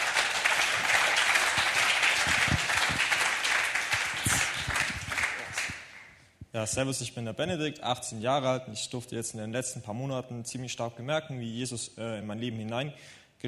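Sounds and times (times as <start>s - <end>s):
audience applause: 0.0s - 6.1s
speech: 6.6s - 13.4s.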